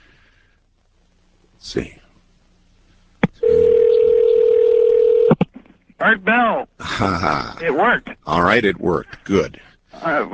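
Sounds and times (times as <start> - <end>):
speech: 1.6 - 2.0, 6.0 - 10.3
payphone dial tone: 3.4 - 5.3.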